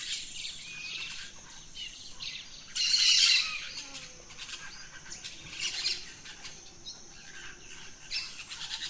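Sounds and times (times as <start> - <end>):
mixed birds singing at dawn: 0.0 - 8.8.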